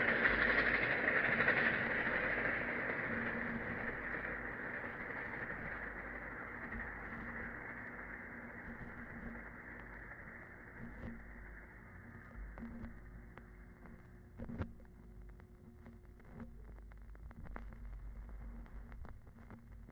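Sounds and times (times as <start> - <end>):
train wheels on steel rails switching: 0.0 - 10.0
steam locomotive: 0.0 - 12.6.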